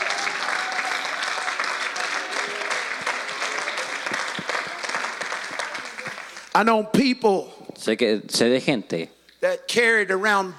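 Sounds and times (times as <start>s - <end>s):
audience clapping: 0.0s - 6.7s
speech: 6.6s - 10.5s.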